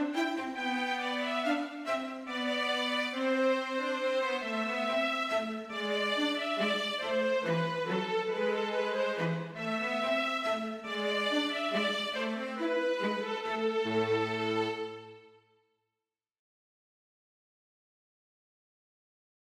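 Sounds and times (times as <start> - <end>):
violin and cello playing a minuet: 0.0 - 15.3.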